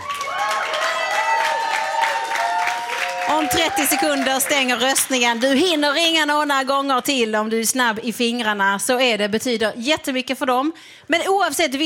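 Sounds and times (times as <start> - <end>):
audience applause: 0.0 - 5.8
speech: 3.4 - 11.8.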